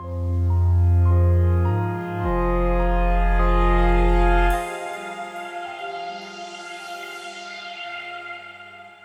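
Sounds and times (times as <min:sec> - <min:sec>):
full bass: 0:00.0 - 0:04.7.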